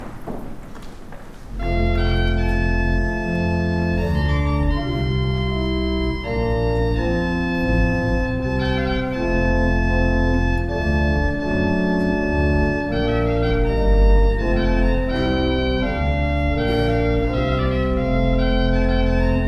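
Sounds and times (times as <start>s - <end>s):
improvised gospel music: 0.0s - 19.4s.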